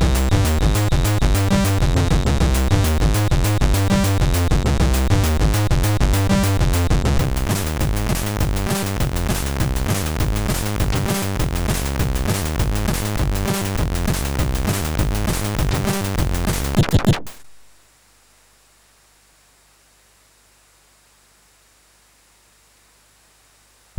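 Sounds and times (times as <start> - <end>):
techno break on MOS6581R2 SID chip: 0.0 - 17.4.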